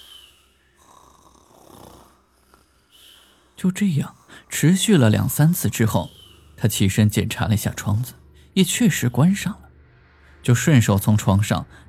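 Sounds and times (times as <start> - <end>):
several people snoring in turn: 0.0 - 8.1
speech: 3.6 - 9.6, 10.4 - 11.8.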